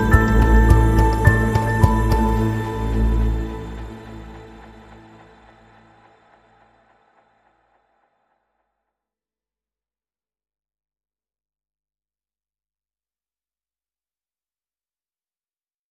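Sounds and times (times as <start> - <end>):
piano pads: 0.0 - 6.6.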